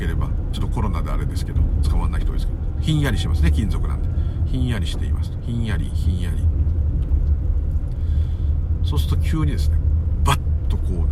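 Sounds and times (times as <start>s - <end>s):
deep rumble: 0.0s - 11.1s
speech: 0.8s - 6.6s, 8.9s - 11.1s.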